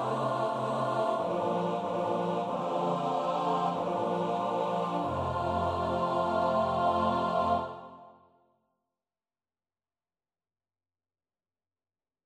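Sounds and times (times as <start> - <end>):
soprano alto tenor bass voices: 0.0 - 8.0.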